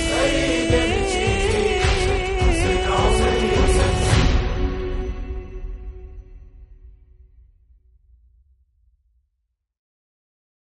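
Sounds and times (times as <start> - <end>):
Arabic nawha chant: 0.0 - 5.3.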